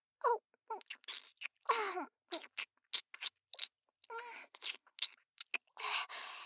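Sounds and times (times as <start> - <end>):
person licking up something sweet and melting: 0.8 - 1.7, 2.3 - 6.1.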